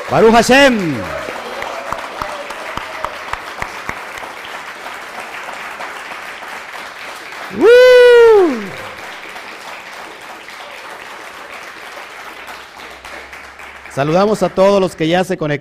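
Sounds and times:
loud ovation: 0.0s - 5.2s, 7.4s - 9.3s
speech: 0.1s - 1.2s, 14.0s - 15.5s.

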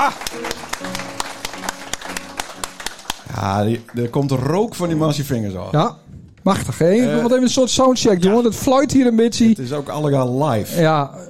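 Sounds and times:
speech: 0.0s - 1.7s, 3.4s - 11.2s
audience applause: 0.0s - 5.1s.

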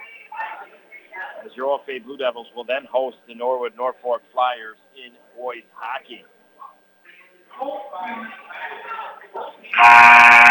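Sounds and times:
speech: 1.4s - 6.4s, 7.6s - 10.4s
basketball game buzzer sounding: 9.7s - 10.4s.

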